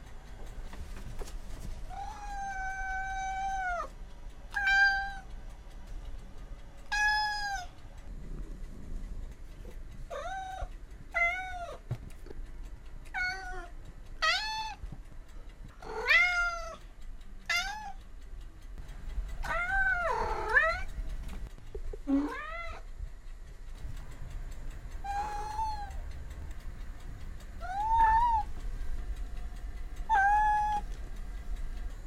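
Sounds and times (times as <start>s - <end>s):
low background hum: 0.0s - 32.0s
domestic cat meowing: 1.9s - 3.9s, 4.5s - 5.3s, 6.9s - 7.7s, 10.1s - 11.8s, 13.1s - 14.8s, 15.8s - 16.8s, 17.4s - 18.0s, 19.4s - 20.9s, 22.1s - 22.9s, 25.0s - 26.0s, 27.6s - 28.5s, 30.1s - 30.9s.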